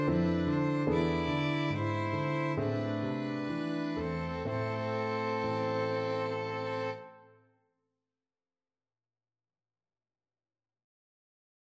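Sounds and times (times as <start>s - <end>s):
violin variation: 0.0s - 7.3s.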